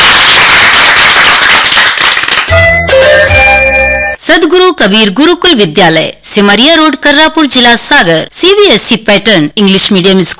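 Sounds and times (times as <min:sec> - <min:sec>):
children clapping loudly: 0:00.0 - 0:03.0
speech: 0:04.3 - 0:10.3.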